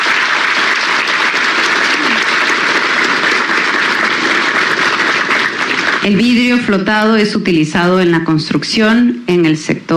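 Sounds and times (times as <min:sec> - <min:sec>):
audience applause: 0:00.0 - 0:06.6
speech: 0:06.0 - 0:09.9.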